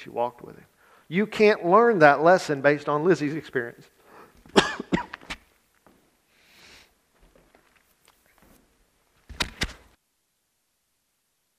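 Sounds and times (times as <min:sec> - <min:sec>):
speech: 0:00.0 - 0:04.9
faint breathing: 0:00.7 - 0:01.1, 0:04.0 - 0:04.4, 0:06.3 - 0:07.0
person coughing: 0:04.5 - 0:05.2.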